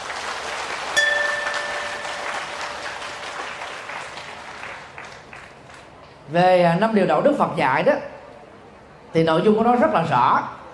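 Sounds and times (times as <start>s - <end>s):
crowd applause: 0.0s - 6.0s
brief high ringing tone: 1.0s - 3.0s
speech: 6.3s - 8.1s, 9.1s - 10.6s.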